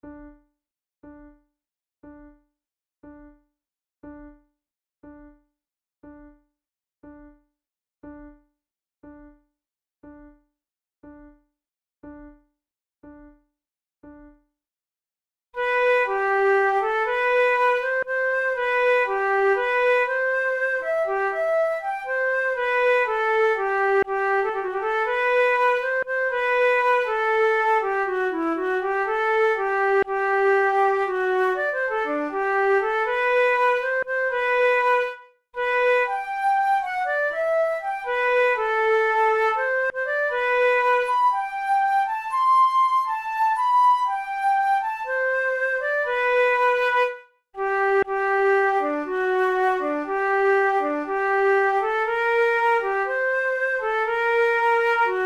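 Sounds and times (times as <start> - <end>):
flute duet: 15.6 - 55.2.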